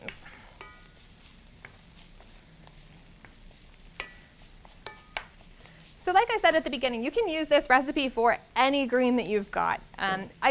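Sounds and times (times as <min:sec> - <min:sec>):
food sizzling in a pan: 0:00.0 - 0:10.4
clinks and scrapes of stirring: 0:00.1 - 0:05.7
speech: 0:06.2 - 0:10.4.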